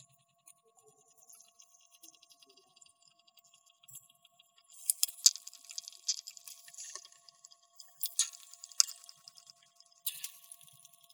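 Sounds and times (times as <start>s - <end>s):
ice bubbles: 4.8s - 10.5s.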